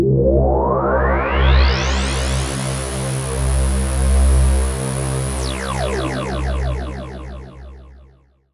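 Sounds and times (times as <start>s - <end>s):
delay sweep in C: 0.1s - 8.0s.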